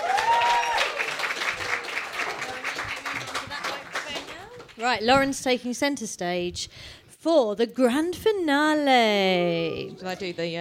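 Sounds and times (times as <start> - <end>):
audience round of applause: 0.0 - 4.8
speech: 4.8 - 10.5.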